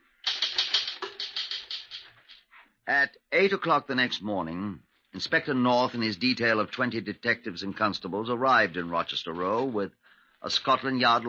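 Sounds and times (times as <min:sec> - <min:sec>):
typewriter keys clacking as a secretary types a report in a police office: 0:00.2 - 0:02.4
speech: 0:02.9 - 0:11.2.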